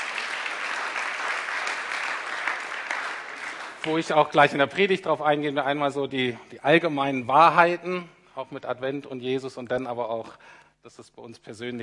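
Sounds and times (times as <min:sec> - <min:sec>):
audience applause: 0:00.0 - 0:04.3
speech: 0:03.8 - 0:11.8.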